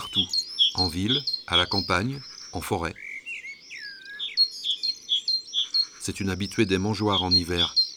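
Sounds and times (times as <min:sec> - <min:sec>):
great tit song: 0:00.0 - 0:07.9
speech: 0:00.1 - 0:03.0, 0:06.0 - 0:07.8.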